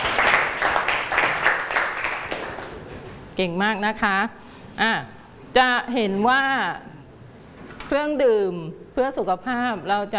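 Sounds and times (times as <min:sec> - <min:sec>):
classroom applause for a student group: 0:00.0 - 0:02.8
speech: 0:03.4 - 0:06.9, 0:07.9 - 0:10.1.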